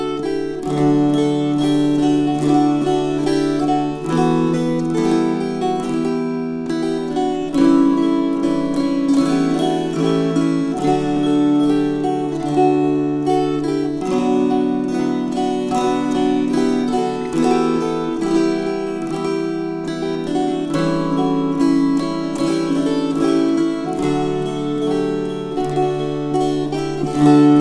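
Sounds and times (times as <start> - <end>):
string choir: 0.1 - 27.6.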